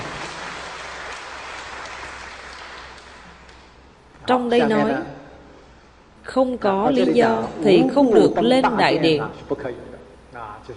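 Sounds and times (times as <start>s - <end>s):
lecture audience applauding: 0.0s - 4.0s
speech: 4.3s - 5.1s, 6.3s - 10.7s.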